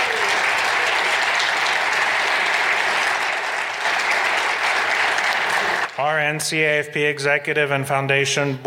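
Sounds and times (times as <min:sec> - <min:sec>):
audience applause: 0:00.0 - 0:06.0
speech: 0:06.0 - 0:08.6.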